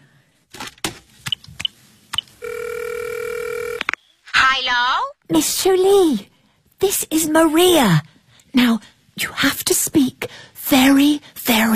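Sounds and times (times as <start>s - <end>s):
telephone dialing: 2.4s - 3.9s
speech: 4.6s - 10.0s, 10.7s - 11.7s.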